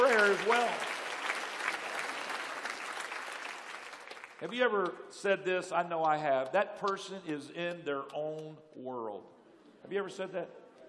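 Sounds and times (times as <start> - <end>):
audience clapping hands: 0.0 - 5.0, 5.9 - 8.5
speech: 0.1 - 1.0, 4.4 - 10.6.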